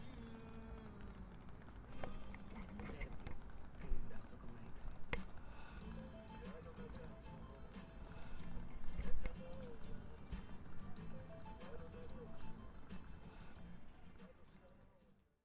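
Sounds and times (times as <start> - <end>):
Greek restaurant ambience at a harbour: 0.0 - 15.2.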